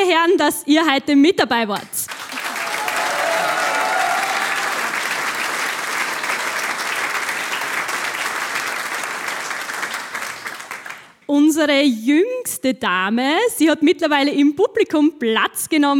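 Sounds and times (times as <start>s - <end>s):
speech: 0.2s - 2.0s, 11.3s - 15.9s
audience applause: 2.1s - 11.2s.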